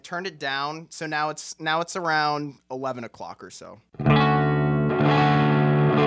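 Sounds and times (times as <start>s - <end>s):
speech: 0.1s - 4.2s
electric guitar chords through a slightly buzzy pedal: 4.0s - 6.0s.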